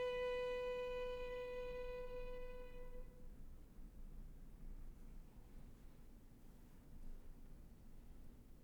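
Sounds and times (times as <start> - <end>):
two violins playing a duo on a Slovakian song: 0.0 - 3.1.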